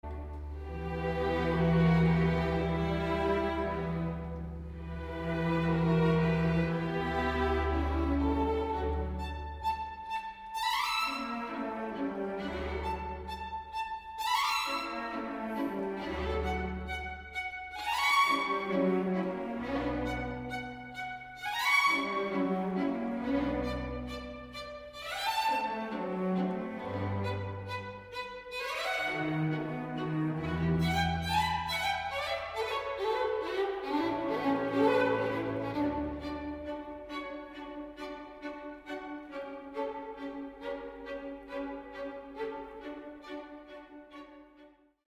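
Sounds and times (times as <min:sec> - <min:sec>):
fast stormy string sonata: 0:00.5 - 0:44.8.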